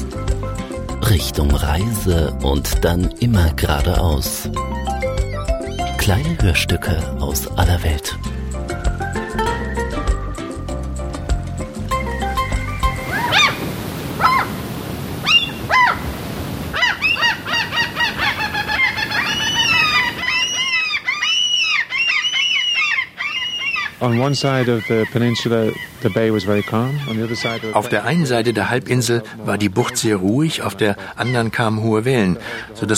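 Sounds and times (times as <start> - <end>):
music: 0.0 - 13.4
birds calling: 0.0 - 32.9
speech: 1.1 - 5.0, 6.0 - 8.3, 24.0 - 32.9.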